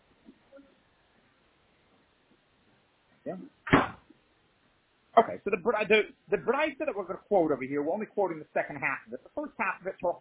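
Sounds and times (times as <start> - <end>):
speech: 3.3 - 3.7, 5.2 - 10.2
door closing and latching: 3.7 - 4.1.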